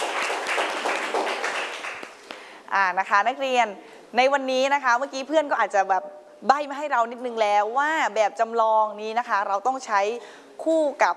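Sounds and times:
students in a classroom clapping: 0.0 - 2.4
speech: 2.7 - 11.1.

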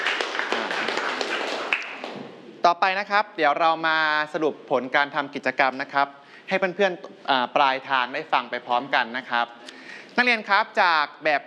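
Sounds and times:
students clapping hands in applause: 0.0 - 2.3
speech: 2.6 - 11.4.

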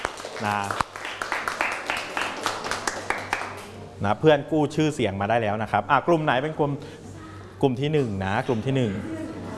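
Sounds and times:
applause for a classmate: 0.0 - 3.7
speech: 0.4 - 0.9, 4.0 - 7.0, 7.6 - 9.4.

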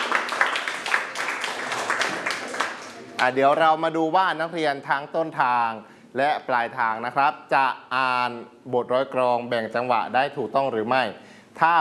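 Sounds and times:
students clapping hands: 0.0 - 3.4
speech: 3.2 - 11.7.

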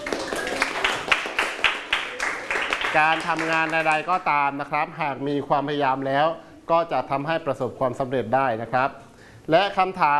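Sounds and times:
classroom children clapping for a student: 0.0 - 4.3
speech: 2.9 - 10.1.

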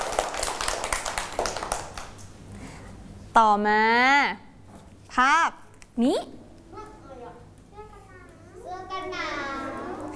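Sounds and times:
applause: 0.0 - 2.2
speech: 3.4 - 4.5, 5.2 - 6.4.

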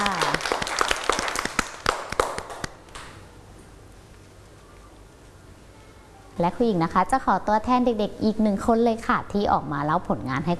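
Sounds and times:
children clapping hands: 0.0 - 2.8
speech: 6.4 - 10.5.

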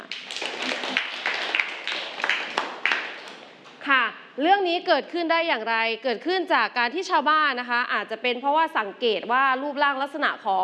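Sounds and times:
classroom group clapping: 0.0 - 3.8
speech: 4.4 - 10.6.

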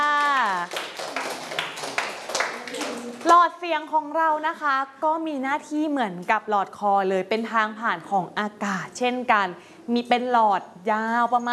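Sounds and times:
classmates clapping: 0.0 - 3.5
speech: 3.3 - 11.5.

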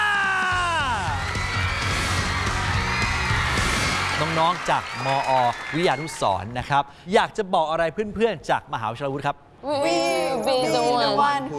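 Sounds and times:
crowd cheering and whooping: 0.0 - 6.4
applause: 1.3 - 6.7
speech: 4.4 - 11.5.

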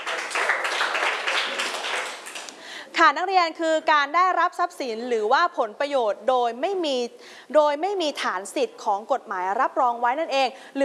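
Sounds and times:
students clapping for a classmate in a classroom: 0.0 - 2.6
speech: 3.0 - 10.8.

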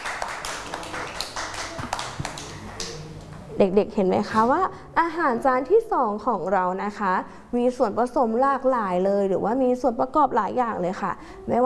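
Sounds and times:
clapping: 0.0 - 3.3
speech: 3.6 - 11.6.

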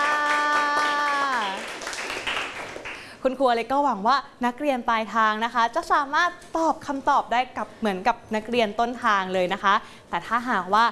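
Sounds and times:
classroom clapping for a classmate: 0.0 - 3.1
speech: 3.2 - 10.9.

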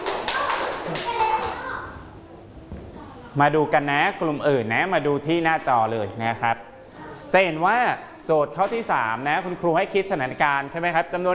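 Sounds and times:
group of children clapping: 0.0 - 1.9
faint children's voices: 0.0 - 4.2, 6.7 - 8.6
speech: 3.4 - 6.7, 7.3 - 11.3.

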